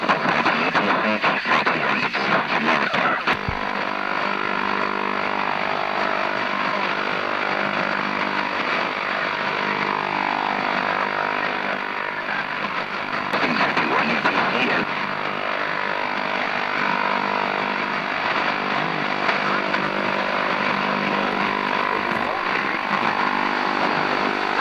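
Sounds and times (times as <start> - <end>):
shortwave radio from South Africa: 0.0 - 24.5.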